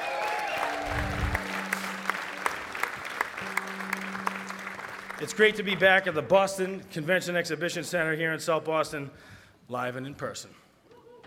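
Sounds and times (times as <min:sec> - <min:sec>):
audience applause at a St. Patrick's Day breakfast in South Boston: 0:00.0 - 0:06.0
steady tones: 0:00.5 - 0:07.3
speech: 0:05.2 - 0:10.6.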